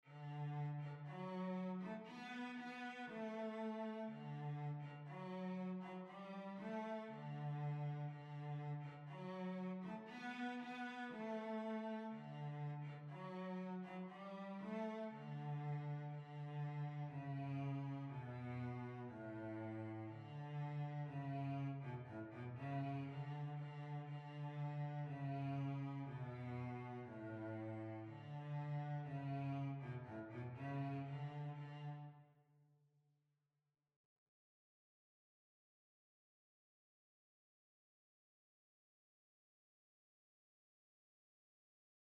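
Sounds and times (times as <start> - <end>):
violoncello: 0.0 - 32.4.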